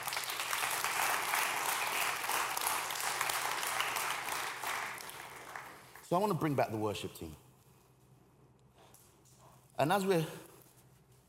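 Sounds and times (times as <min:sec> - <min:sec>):
audience clapping: 0:00.0 - 0:06.3
speech: 0:06.1 - 0:07.4, 0:09.8 - 0:10.5.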